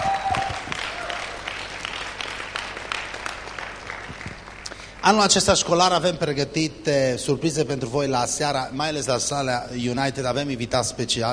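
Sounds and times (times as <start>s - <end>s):
audience applause: 0.0s - 5.0s
speech: 5.0s - 11.3s.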